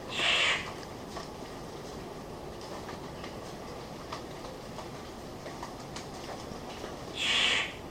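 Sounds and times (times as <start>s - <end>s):
Victoria's riflebird Ptiloris victoriae rasping call: 0.1s - 0.7s, 7.1s - 7.8s.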